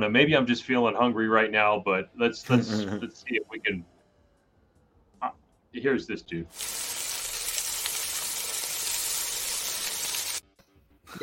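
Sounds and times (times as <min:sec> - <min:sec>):
speech: 0:00.0 - 0:03.9, 0:05.2 - 0:07.0
laughter: 0:02.5 - 0:03.2
hash browns sizzling in a frying pan: 0:06.5 - 0:10.4.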